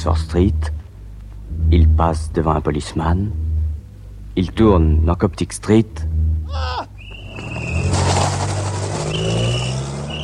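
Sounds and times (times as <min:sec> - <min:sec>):
speech: 0:00.0 - 0:00.8, 0:01.6 - 0:03.4, 0:04.4 - 0:06.9
car accelerating hard and speeding off: 0:00.4 - 0:10.2
tire squeal: 0:06.1 - 0:10.2
short falling cry: 0:06.3 - 0:08.0.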